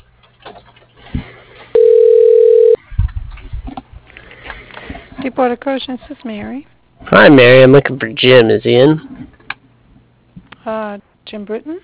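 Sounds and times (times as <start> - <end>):
phone line noise: 1.8 - 2.8
telephone hold tone: 1.8 - 2.8
speech: 5.3 - 9.2, 10.6 - 11.8.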